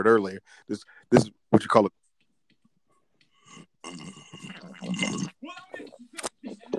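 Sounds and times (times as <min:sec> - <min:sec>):
speech: 0:00.0 - 0:02.0, 0:03.8 - 0:06.7
slurping through a straw from an empty can: 0:03.5 - 0:05.4.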